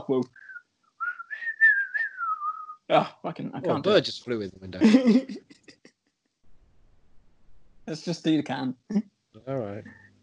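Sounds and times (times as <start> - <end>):
speech: 0.1 - 0.5, 2.9 - 5.7, 7.9 - 10.0
person whistling a flute-like melody: 0.3 - 2.8
laughter: 4.6 - 5.9.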